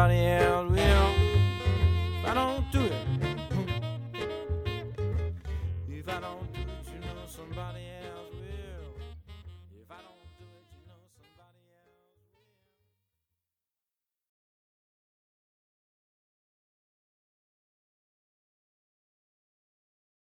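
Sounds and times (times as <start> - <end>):
acoustic guitar: 0.0 - 10.4
upright bass: 0.0 - 10.9
person singing New Orleans blues: 0.0 - 11.8
saxophone: 0.0 - 12.7.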